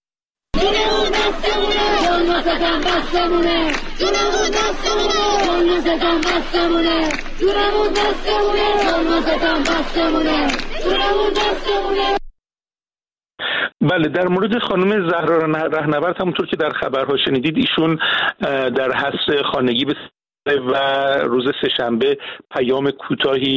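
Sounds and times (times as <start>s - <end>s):
students chanting at a rally at the University of Science and Culture in Tehran: 0.6s - 12.2s
speech: 2.4s - 12.2s, 13.8s - 23.5s.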